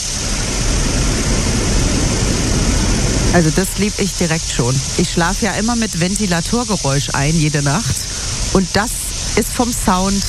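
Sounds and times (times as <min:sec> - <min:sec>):
rushing river water: 0:00.1 - 0:10.2
speech: 0:03.4 - 0:10.2.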